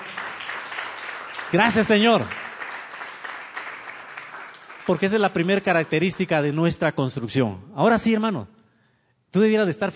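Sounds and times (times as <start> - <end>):
audience applause: 0.0 - 5.9
speech: 1.5 - 2.4, 4.9 - 8.6, 9.3 - 9.9.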